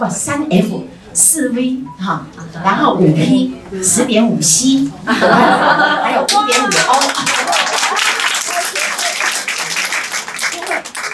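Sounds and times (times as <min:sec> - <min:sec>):
speech: 0:00.0 - 0:08.1
laughter: 0:05.0 - 0:09.3
audience applause: 0:06.3 - 0:11.1.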